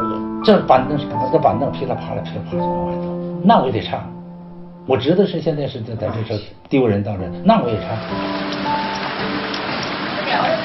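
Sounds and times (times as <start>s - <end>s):
speech: 0.4s - 4.2s, 4.8s - 9.4s
heavy rain: 8.0s - 10.6s.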